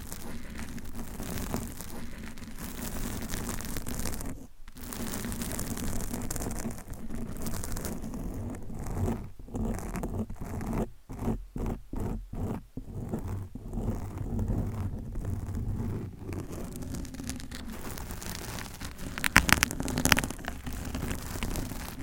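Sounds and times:
long nails scratching across a microphone: 0.0s - 22.0s.

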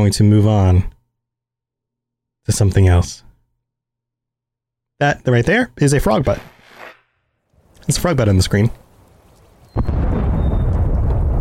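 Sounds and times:
speech: 0.0s - 0.9s, 2.4s - 3.3s, 5.0s - 6.5s, 7.9s - 8.8s, 9.8s - 10.1s
video game bombs exploding: 9.7s - 11.4s.

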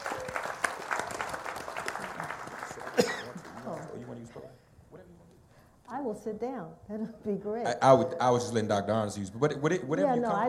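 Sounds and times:
audience round of applause: 0.0s - 4.2s
speech: 6.2s - 10.4s.

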